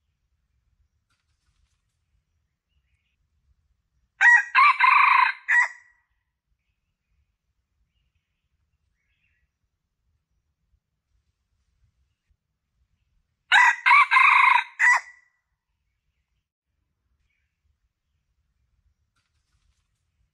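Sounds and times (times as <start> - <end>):
Red junglefowl crowing: 4.2 - 5.8, 13.5 - 15.2.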